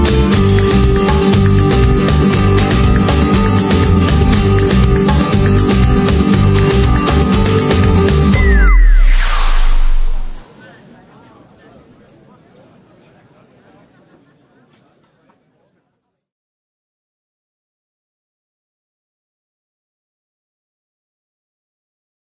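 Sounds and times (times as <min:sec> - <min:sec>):
sunny rhythm music: 0:00.0 - 0:10.4.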